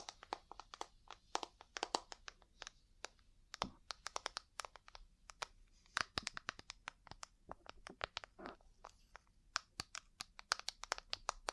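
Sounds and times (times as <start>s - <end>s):
ear cleaning sharp taps and clicks: 0.0s - 11.5s.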